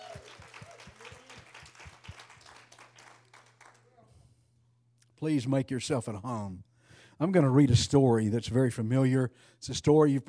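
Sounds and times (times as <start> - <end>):
church congregation applause at a Sunday service: 0.0 - 4.0
speech: 5.2 - 10.2.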